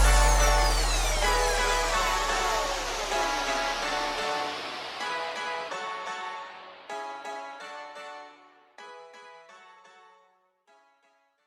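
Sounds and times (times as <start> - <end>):
car audio music: 0.0 - 8.0.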